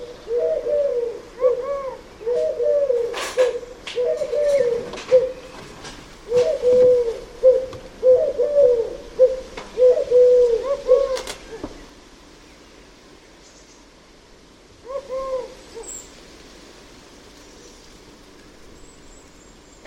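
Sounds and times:
bird calling with mellow cooing notes: 0.0 - 5.6, 6.2 - 11.8, 14.8 - 16.1.

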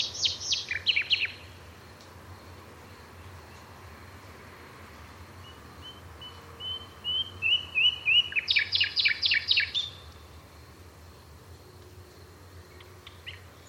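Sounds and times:
bird calls: 0.0 - 1.5, 5.4 - 10.0.

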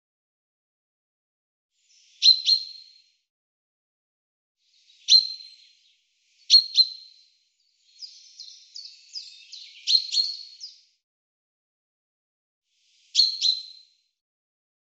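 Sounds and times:
bird chirping in rapid high sharp trilling runs: 1.8 - 3.0, 4.7 - 10.9, 12.9 - 14.0.

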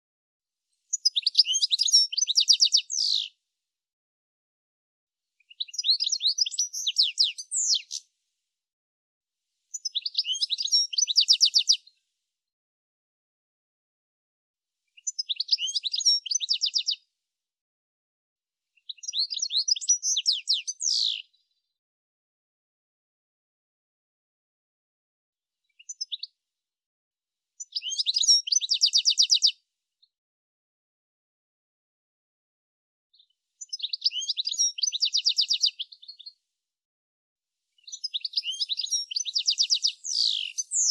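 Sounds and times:
bird chirping: 0.9 - 3.3, 5.4 - 8.0, 9.7 - 11.9, 15.0 - 17.0, 18.8 - 21.4, 25.7 - 26.3, 27.6 - 29.5, 33.2 - 36.4, 37.8 - 40.9.

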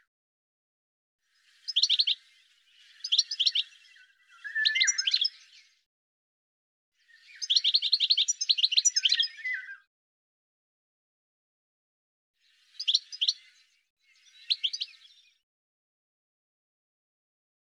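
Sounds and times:
bird giving bursts of quick high twittering notes: 2.8 - 5.6, 7.1 - 9.8, 12.7 - 15.2.

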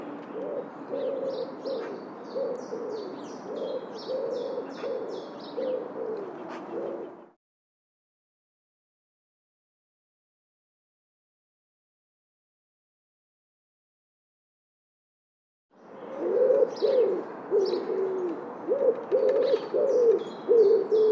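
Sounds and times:
bird giving low hollow cooing notes: 0.0 - 7.4, 15.9 - 21.1.

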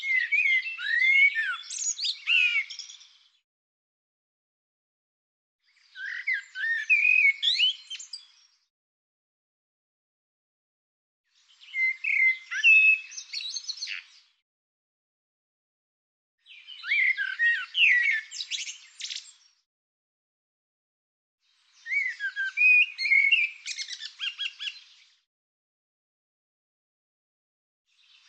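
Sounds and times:
bird song: 0.0 - 3.4, 5.6 - 8.7, 11.3 - 14.4, 16.4 - 19.7, 21.4 - 25.3, 27.9 - 28.2.

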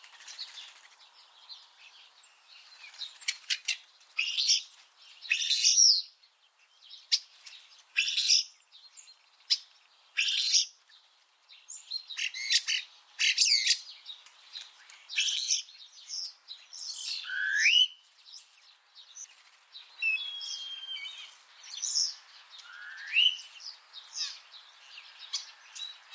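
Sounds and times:
common starling calls: 2.2 - 6.1, 7.0 - 8.6, 9.4 - 10.8, 11.7 - 26.1.

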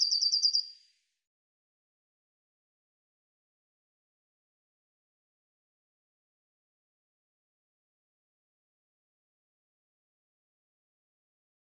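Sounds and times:
bird song trills: 0.0 - 0.9.

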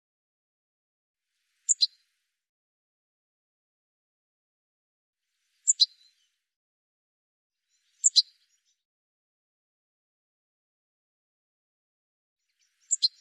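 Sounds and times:
high bird chirps: 1.7 - 2.0, 8.0 - 8.4, 12.8 - 13.1.

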